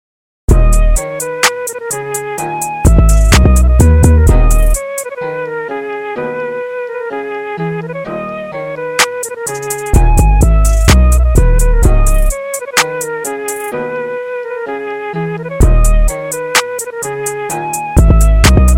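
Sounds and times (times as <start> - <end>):
bebop instrumental: 0.5 - 5.6, 8.8 - 14.1, 15.5 - 18.7.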